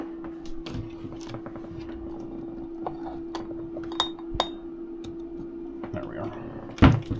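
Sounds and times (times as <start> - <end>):
steady low hum: 0.0 - 7.1
glass bottle of avocado oil clinking and clicking as it is opened: 3.3 - 4.6.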